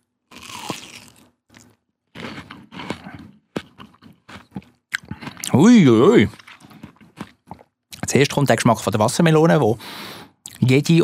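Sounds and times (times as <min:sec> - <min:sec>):
person chewing a crunchy spiced snack: 0:00.0 - 0:08.0
speech: 0:05.5 - 0:06.4, 0:08.2 - 0:11.0.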